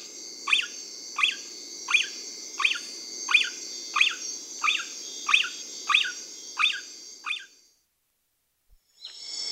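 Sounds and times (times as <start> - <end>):
kinkajou squeaky calls: 0.5 - 7.5.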